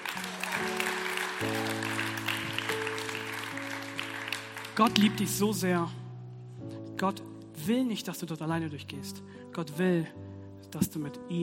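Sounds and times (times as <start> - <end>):
audience applause: 0.0 - 5.4
speech: 4.8 - 6.0, 7.0 - 11.4.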